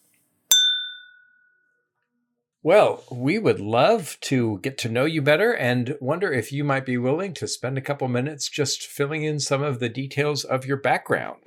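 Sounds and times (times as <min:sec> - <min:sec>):
glasses clinking in a toast: 0:00.5 - 0:01.6
speech: 0:02.6 - 0:11.4.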